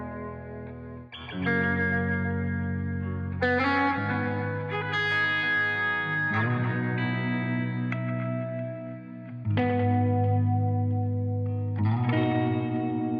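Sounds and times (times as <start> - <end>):
reflective electric guitar: 0.0 - 13.1.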